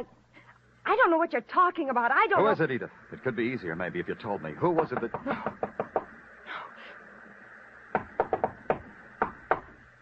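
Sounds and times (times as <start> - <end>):
speech: 0.9 - 5.9
knocking on a door: 4.7 - 6.1, 7.9 - 9.8.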